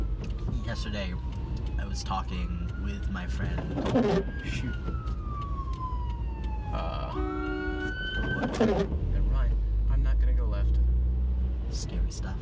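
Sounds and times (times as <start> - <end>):
ambulance siren wailing: 0.0 - 9.0
low rumble of a moving car: 0.0 - 12.3
speech: 0.7 - 5.2, 6.7 - 7.4, 8.4 - 9.1.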